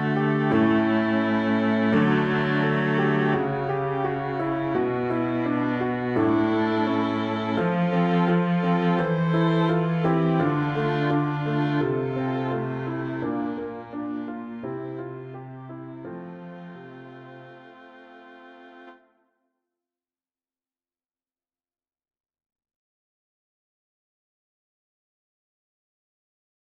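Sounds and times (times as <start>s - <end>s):
low musical accompaniment: 0.0s - 19.1s.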